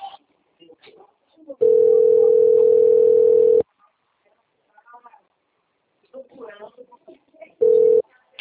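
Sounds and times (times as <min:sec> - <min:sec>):
telephone ringing: 0:01.6 - 0:03.6, 0:07.6 - 0:08.0.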